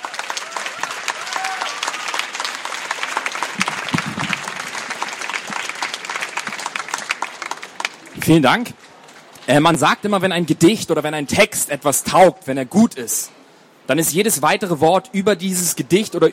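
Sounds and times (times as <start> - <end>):
audience applause: 0.0 - 8.4
audience noise: 0.0 - 12.0
speech: 8.3 - 8.8, 9.5 - 16.3.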